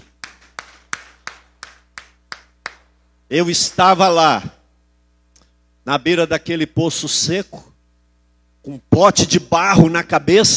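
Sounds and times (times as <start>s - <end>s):
audience clapping in a steady even rhythm: 0.0s - 3.0s
speech: 3.3s - 4.6s, 5.8s - 7.7s, 8.6s - 10.5s.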